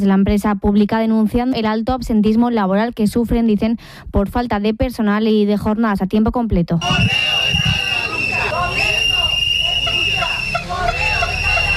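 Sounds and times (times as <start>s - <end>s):
speech: 0.0s - 7.8s
protesters shouting and chanting outdoors: 6.8s - 11.7s
steady high-pitched whistle or siren tone: 6.8s - 11.7s.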